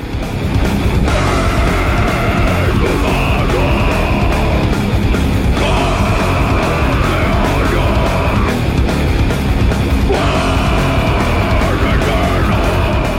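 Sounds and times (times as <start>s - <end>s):
heavy metal band track with distorted guitars and pounding drums: 0.0s - 13.1s.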